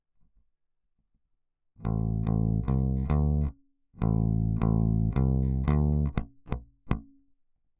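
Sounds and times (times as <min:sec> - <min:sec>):
bass: 0:01.8 - 0:07.1.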